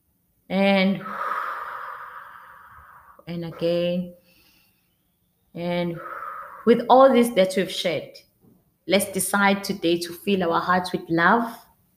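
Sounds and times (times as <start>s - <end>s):
deep breath taken during a guided calming exercise: 1.0s - 3.2s, 4.2s - 5.0s, 5.9s - 6.8s
speech: 3.3s - 4.2s, 5.6s - 8.3s, 8.9s - 11.6s.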